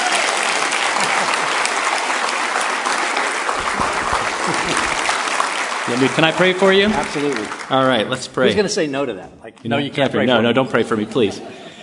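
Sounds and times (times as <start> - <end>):
large audience applause: 0.0 - 8.2
laughter: 1.0 - 1.7, 3.5 - 7.6, 10.3 - 11.8
speech: 5.9 - 11.6.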